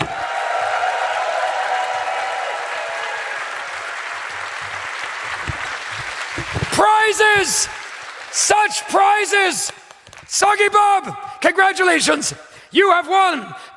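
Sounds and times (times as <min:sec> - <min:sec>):
audience clapping and cheering: 0:00.0 - 0:11.2
speech: 0:06.8 - 0:13.7.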